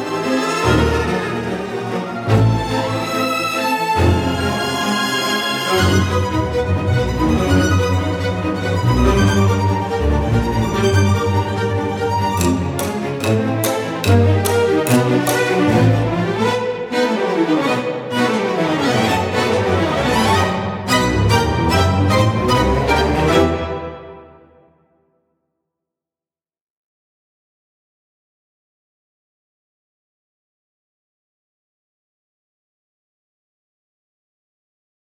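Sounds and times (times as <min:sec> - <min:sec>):
strings: 0:00.0 - 0:24.4.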